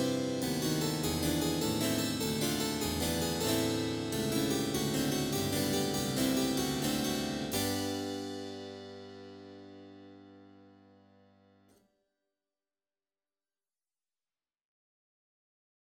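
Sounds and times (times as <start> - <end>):
improvised Gloria: 0.0 - 9.2.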